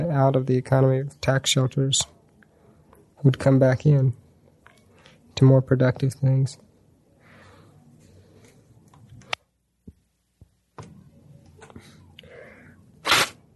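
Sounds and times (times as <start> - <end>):
speech: 0.0 - 2.2, 3.2 - 4.2, 5.4 - 6.6
nose blowing: 13.0 - 13.4.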